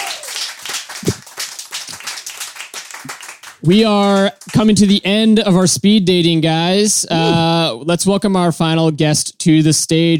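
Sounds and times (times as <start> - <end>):
audience clapping for a departing guest at a speed-dating stage show: 0.0 - 5.2
speech: 3.6 - 10.1.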